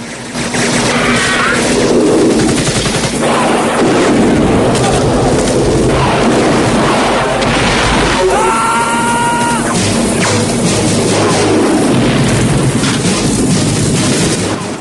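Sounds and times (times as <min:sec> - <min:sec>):
machine gun fire in a film battle scene at an enemy camp: 0:00.0 - 0:08.9, 0:09.6 - 0:14.7
explosions of huts blown up in a film battle scene: 0:00.3 - 0:14.7
person shouting: 0:08.2 - 0:09.8.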